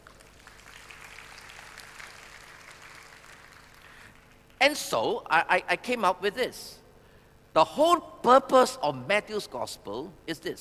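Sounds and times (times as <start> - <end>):
audience applauding: 0.0 - 4.6
faint hum: 0.0 - 10.5
speech: 4.6 - 6.8, 7.6 - 10.5.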